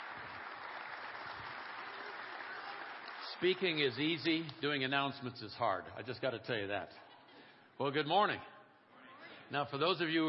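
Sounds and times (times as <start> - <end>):
church congregation applauding its pastor: 0.0 - 4.8
speech: 3.3 - 7.1, 7.8 - 8.5, 9.5 - 10.2.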